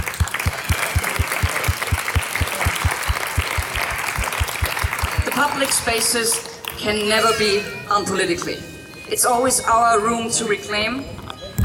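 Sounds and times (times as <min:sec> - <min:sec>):
fast thumping pulse: 0:00.0 - 0:05.5
audience applauding: 0:00.0 - 0:06.8
speech: 0:05.6 - 0:11.2.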